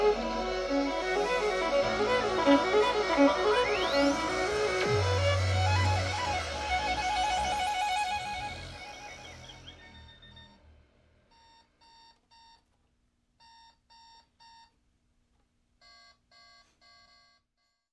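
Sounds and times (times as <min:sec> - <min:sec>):
fugue: 0:00.0 - 0:10.5.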